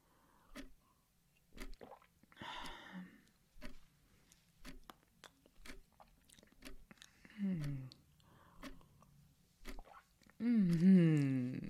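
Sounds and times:
sipping tea: 1.6 - 10.8
eating pastry: 3.2 - 11.6.

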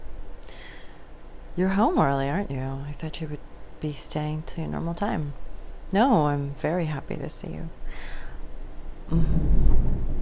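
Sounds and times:
speech: 1.6 - 8.2, 9.1 - 9.4
thunder at the start of a lightning storm: 9.2 - 10.1.

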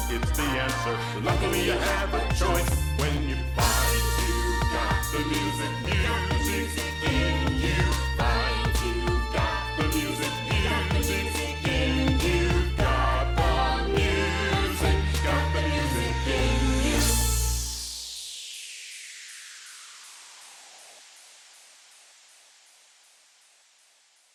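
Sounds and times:
orchestral remix: 0.0 - 18.0.

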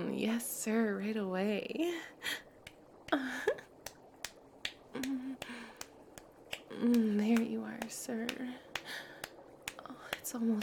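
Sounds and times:
speech: 0.2 - 2.4, 3.1 - 3.6, 6.8 - 9.0, 10.3 - 10.6
buttocks flesh clapping together: 2.6 - 10.6.

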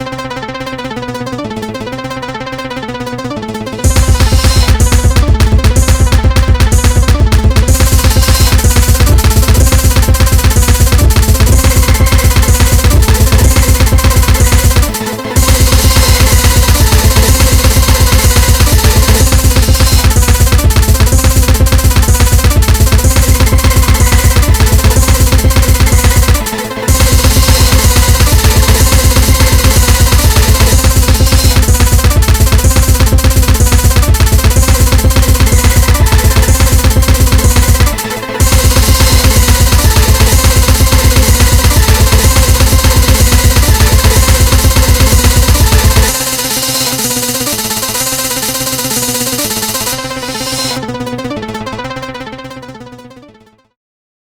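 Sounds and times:
500 tempo beat: 3.8 - 50.9.

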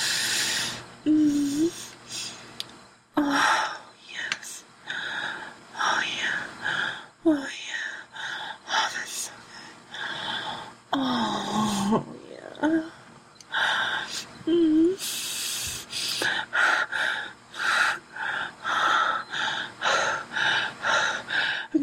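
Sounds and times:
heavy breathing: 0.0 - 2.4, 4.8 - 7.2, 7.9 - 12.0, 12.8 - 21.8.

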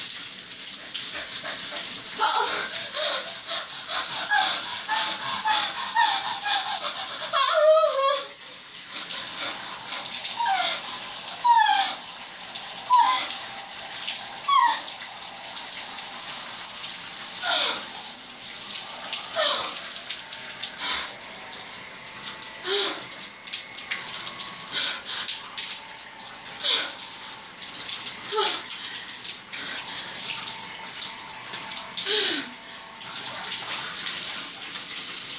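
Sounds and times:
detachable shower head: 0.5 - 35.1.

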